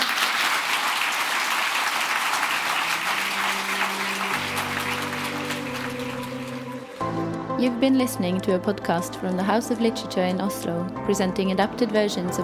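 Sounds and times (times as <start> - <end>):
audience applause: 0.0 - 7.2
speech: 7.6 - 12.4.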